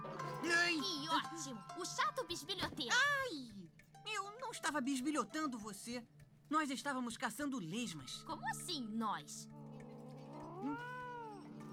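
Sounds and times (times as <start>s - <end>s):
speech: 0.8s - 9.6s
cartoon pet cat meowing: 9.8s - 11.7s.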